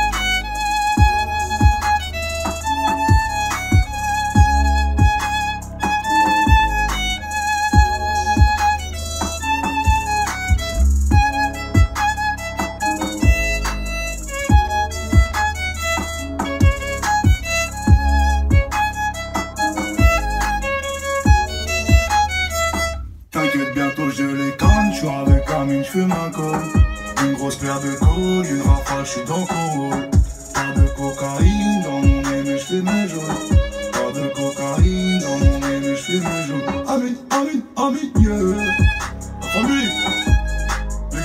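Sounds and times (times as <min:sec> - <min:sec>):
violin version of a song: 0:00.0 - 0:41.2.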